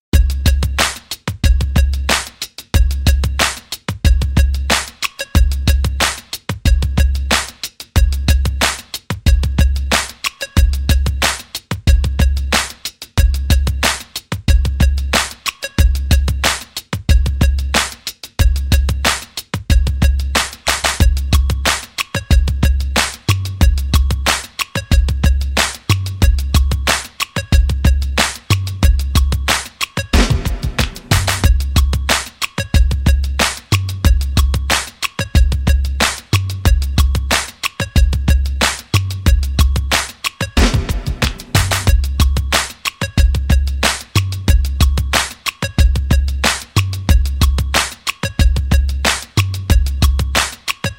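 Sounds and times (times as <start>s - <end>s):
92 bpm beat loop: 0.1s - 50.9s.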